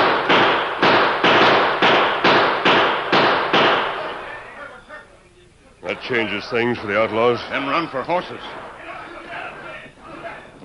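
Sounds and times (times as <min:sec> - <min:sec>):
gunshots: 0:00.0 - 0:04.3, 0:07.0 - 0:09.0
speech: 0:05.9 - 0:08.6.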